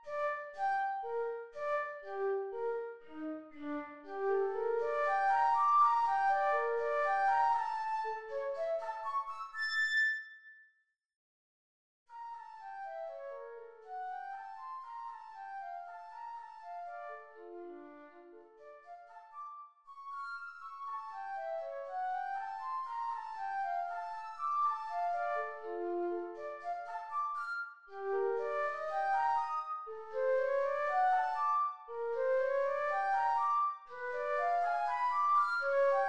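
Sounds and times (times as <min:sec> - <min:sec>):
slow flute: 0:00.0 - 0:10.4, 0:18.6 - 0:36.0.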